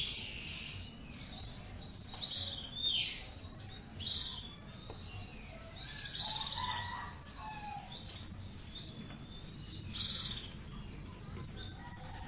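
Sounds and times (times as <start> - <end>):
Oriental magpie-robin song: 0.0 - 12.2.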